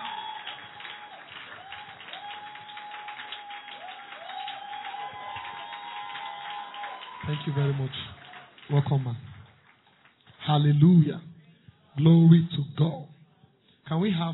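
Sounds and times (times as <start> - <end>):
church congregation clapping to celebrate a woman: 0.0 - 10.5
speech: 7.3 - 9.4, 10.5 - 11.3, 12.0 - 13.1, 13.9 - 14.3.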